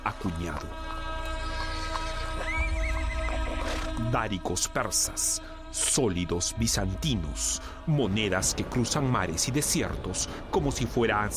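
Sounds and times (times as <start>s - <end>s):
speech: 0.2s - 1.0s, 4.0s - 11.3s
low rumble: 0.6s - 10.0s
horse whinnying: 1.4s - 4.0s.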